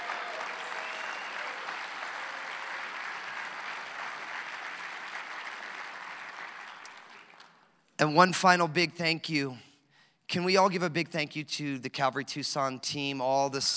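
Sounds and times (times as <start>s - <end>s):
audience round of applause: 0.0s - 7.6s
speech: 8.0s - 9.7s, 10.3s - 13.7s.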